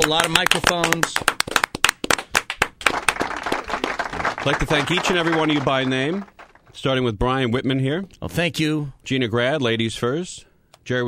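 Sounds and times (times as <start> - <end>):
speech: 0.0 - 1.4, 4.4 - 11.0
lone person clapping hands: 0.0 - 6.7.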